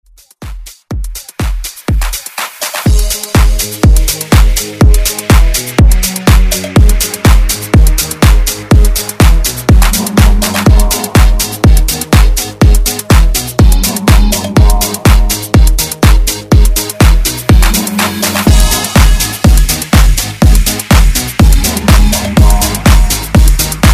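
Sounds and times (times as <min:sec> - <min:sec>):
dance music: 0:00.1 - 0:23.9.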